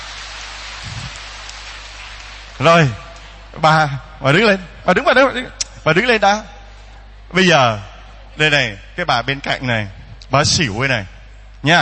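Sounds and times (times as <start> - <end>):
crowd applauding: 0.0 - 3.5
speech: 2.6 - 3.0, 3.6 - 6.5, 7.3 - 11.8.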